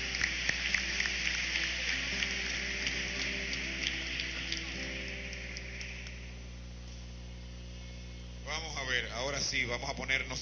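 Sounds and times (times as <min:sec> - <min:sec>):
crowd applause: 0:00.0 - 0:06.2
low constant hum: 0:00.0 - 0:10.3
speech: 0:09.0 - 0:10.3.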